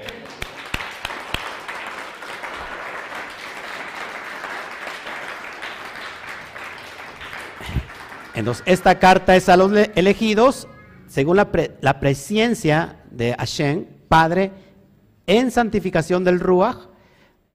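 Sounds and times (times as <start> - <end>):
audience applause: 0.0 - 9.2
speech: 8.4 - 14.6, 15.3 - 16.9.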